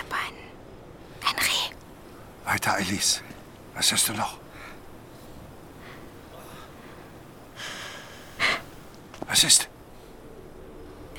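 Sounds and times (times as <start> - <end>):
speech: 2.5 - 4.4, 9.3 - 9.7
person exhaling: 5.8 - 8.9.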